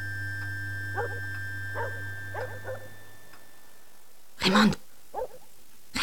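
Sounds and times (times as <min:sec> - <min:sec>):
steady low electrical hum: 0:00.0 - 0:06.0
dog barking at night at a count's castle: 0:01.0 - 0:01.2, 0:01.8 - 0:02.9, 0:05.1 - 0:05.5
speech: 0:01.0 - 0:01.9, 0:04.5 - 0:04.8.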